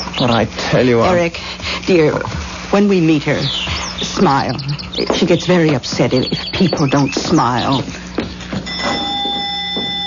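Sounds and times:
speech: 0:00.2 - 0:08.0
doorbell ringing: 0:08.6 - 0:10.0.

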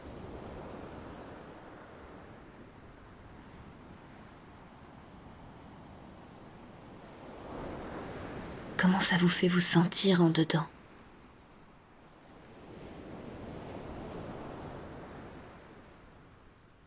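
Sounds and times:
sea waves: 0:00.0 - 0:16.6
speech: 0:08.8 - 0:10.7.

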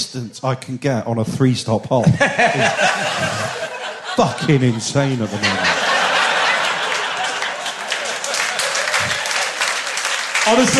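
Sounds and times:
speech: 0:00.1 - 0:03.6, 0:04.2 - 0:05.8, 0:10.4 - 0:10.7
laughter: 0:02.0 - 0:10.7
audience applause: 0:05.2 - 0:10.7.

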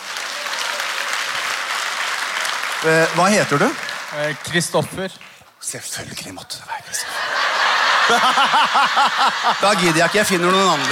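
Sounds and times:
audience clapping: 0:00.0 - 0:05.6, 0:07.1 - 0:10.8
speech: 0:02.8 - 0:06.8, 0:08.1 - 0:10.8
laughter: 0:06.9 - 0:10.8.

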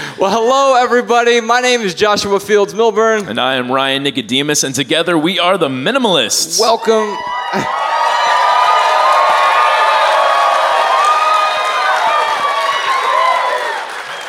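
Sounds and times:
speech: 0:00.2 - 0:07.9
audience whoops and shouts: 0:06.6 - 0:14.2
live theater audience at the Aladdin Theater in Portland clapping: 0:07.4 - 0:14.2.

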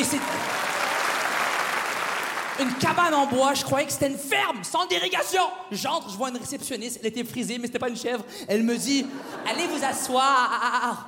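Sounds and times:
speech: 0:00.0 - 0:00.4, 0:02.6 - 0:11.0
audience applause: 0:00.0 - 0:03.1
laughter: 0:09.0 - 0:11.0.

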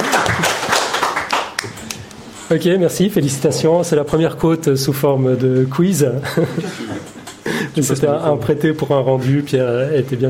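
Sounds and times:
audience applause: 0:00.0 - 0:01.9
speech: 0:02.5 - 0:07.2, 0:07.8 - 0:10.2
laughter: 0:06.2 - 0:07.7.

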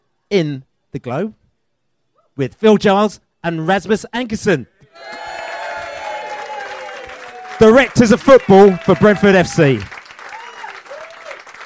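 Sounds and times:
speech: 0:00.3 - 0:01.4, 0:02.4 - 0:05.2, 0:07.6 - 0:09.9
rousing audience applause: 0:05.0 - 0:11.6.

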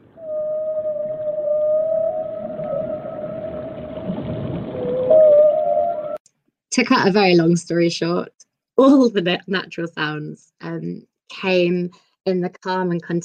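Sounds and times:
animal calls in an underwater recording: 0:00.0 - 0:06.2
low murky underwater wash: 0:00.0 - 0:06.2
speech: 0:06.8 - 0:13.2.

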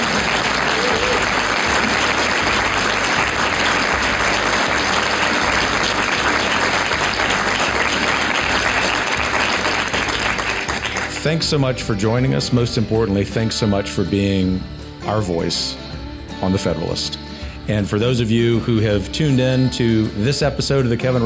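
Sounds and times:
live theater audience applause: 0:00.0 - 0:11.4
speech: 0:11.2 - 0:15.8, 0:16.4 - 0:21.2.

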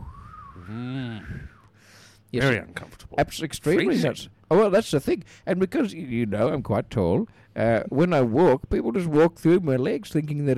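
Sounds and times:
person whistling imitating a breeze: 0:00.0 - 0:01.8
low voiced sound: 0:00.3 - 0:01.6
speech: 0:00.7 - 0:01.5, 0:02.3 - 0:10.5.

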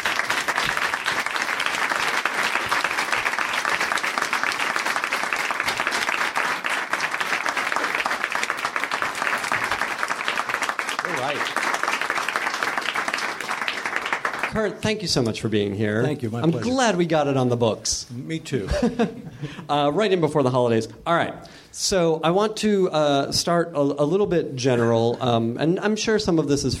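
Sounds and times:
audience applause: 0:00.0 - 0:14.9
speech: 0:14.6 - 0:26.7
laughter: 0:18.6 - 0:20.0.

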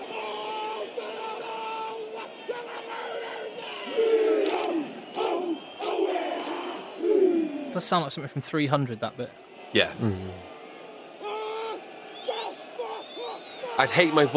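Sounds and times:
stadium crowd jeering: 0:00.0 - 0:08.1, 0:09.4 - 0:14.3
shrill whistles: 0:04.4 - 0:07.6, 0:12.0 - 0:13.9
speech: 0:07.8 - 0:10.5, 0:13.8 - 0:14.3.

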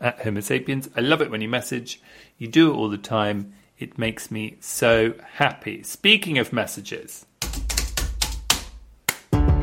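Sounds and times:
speech: 0:00.0 - 0:07.3
single hand clap: 0:07.4 - 0:09.5.

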